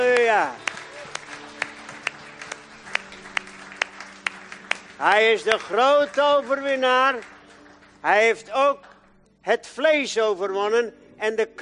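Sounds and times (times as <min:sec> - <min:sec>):
rhythmic clapping: 0:00.0 - 0:09.1
speech: 0:00.3 - 0:00.6, 0:05.0 - 0:07.4, 0:08.0 - 0:11.6.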